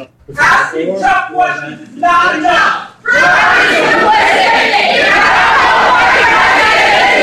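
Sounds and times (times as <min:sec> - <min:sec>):
speech: 0:00.0 - 0:04.0
large crowd of protesters shouting in a lecture hall: 0:02.0 - 0:07.2.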